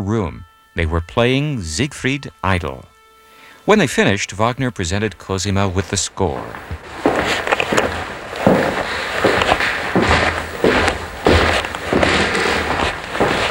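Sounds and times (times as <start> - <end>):
speech: 0.0 - 2.9, 3.6 - 7.0
continuous hiss: 0.0 - 13.5
footsteps on wide oak stairs: 5.8 - 13.5.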